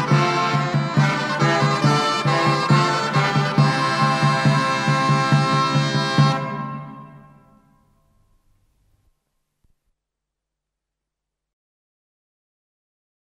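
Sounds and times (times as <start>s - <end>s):
rauschpfeife playing: 0.0s - 9.7s.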